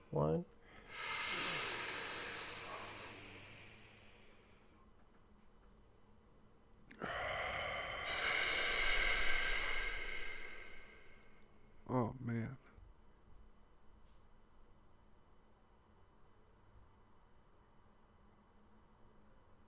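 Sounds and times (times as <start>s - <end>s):
deep breath in: 0.0s - 4.8s, 7.0s - 11.5s
speech: 0.1s - 1.0s.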